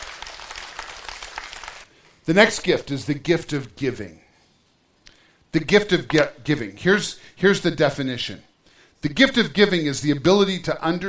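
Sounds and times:
audience applause: 0:00.0 - 0:01.9
speech: 0:02.3 - 0:04.2, 0:05.5 - 0:11.0.

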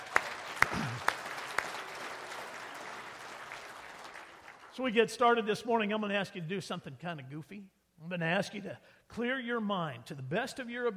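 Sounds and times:
sharp hand claps: 0:00.0 - 0:04.8
speech: 0:04.8 - 0:10.9.

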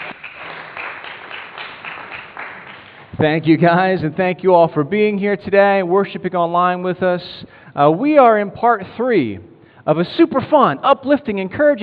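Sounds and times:
crowd applauding: 0:00.0 - 0:03.2
speech: 0:03.2 - 0:11.8.

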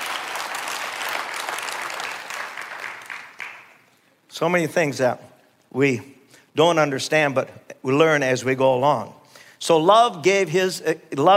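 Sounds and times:
audience clapping: 0:00.0 - 0:04.0
speech: 0:04.4 - 0:11.3.

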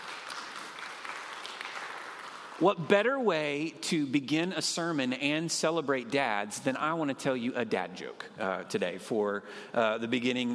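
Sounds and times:
audience clapping: 0:00.0 - 0:02.6
speech: 0:02.6 - 0:10.5.

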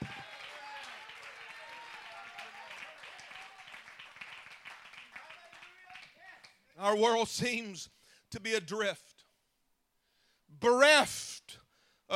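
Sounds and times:
audience clapping: 0:00.0 - 0:06.6
speech: 0:06.8 - 0:09.1, 0:10.6 - 0:11.3.

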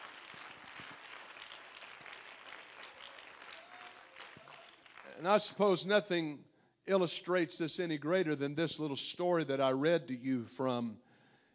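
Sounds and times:
audience clapping hands: 0:00.0 - 0:05.6
speech: 0:05.2 - 0:11.0.

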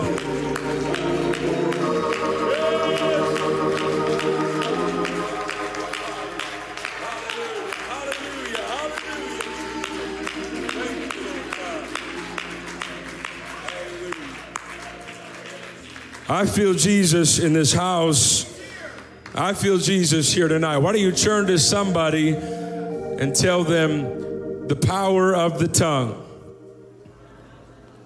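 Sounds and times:
audience clapping and shouting: 0:00.0 - 0:17.2
speech: 0:16.4 - 0:18.5, 0:19.4 - 0:22.6, 0:23.2 - 0:24.2, 0:24.9 - 0:26.3.

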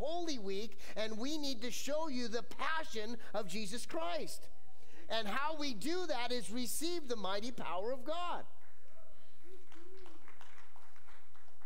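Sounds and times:
speech: 0:00.0 - 0:08.5
soft scattered clapping from a small group: 0:08.6 - 0:11.6.

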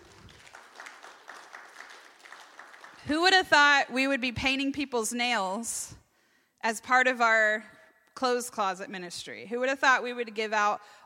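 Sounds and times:
audience clapping: 0:00.0 - 0:03.3
speech: 0:03.0 - 0:06.0, 0:06.6 - 0:11.0.

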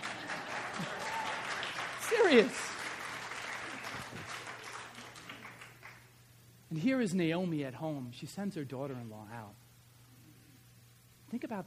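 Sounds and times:
audience applause: 0:00.0 - 0:06.1
speech: 0:02.3 - 0:02.7, 0:06.8 - 0:09.6, 0:11.3 - 0:11.6.

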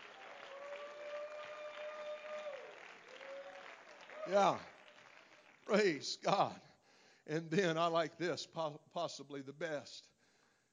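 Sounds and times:
audience hand clap of praise: 0:00.0 - 0:06.5
speech: 0:04.2 - 0:04.7, 0:05.7 - 0:10.1.

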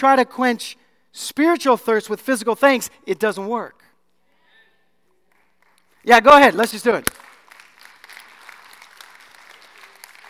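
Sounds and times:
speech: 0:00.0 - 0:03.8, 0:06.0 - 0:07.2
audience applause in church: 0:07.2 - 0:10.2.

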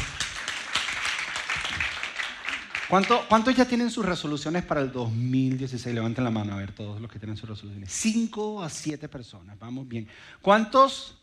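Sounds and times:
audience applause: 0:00.0 - 0:03.6
speech: 0:02.9 - 0:11.2.

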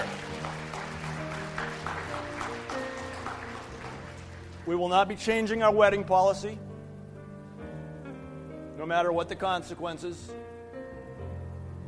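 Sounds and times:
audience clapping: 0:00.0 - 0:05.2
speech: 0:04.7 - 0:06.6, 0:08.8 - 0:10.5.

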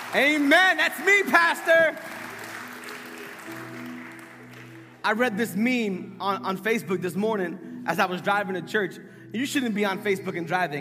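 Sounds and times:
audience clapping: 0:00.0 - 0:05.0
speech: 0:00.1 - 0:02.2, 0:05.0 - 0:10.8.

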